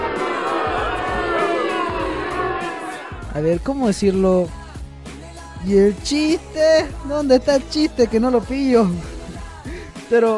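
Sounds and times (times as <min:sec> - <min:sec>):
crowd roaring and cheering: 0:00.0 - 0:03.5
speech: 0:03.4 - 0:04.6, 0:05.6 - 0:09.1, 0:10.1 - 0:10.3.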